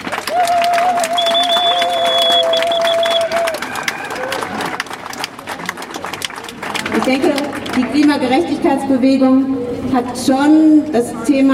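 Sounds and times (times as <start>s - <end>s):
audience applause: 0.0s - 8.4s
speech: 8.2s - 11.5s.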